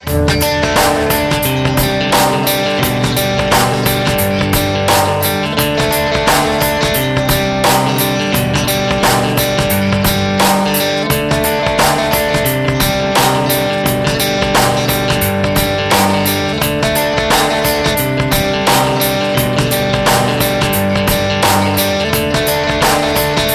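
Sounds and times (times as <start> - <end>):
guitar: 0.0 - 23.5.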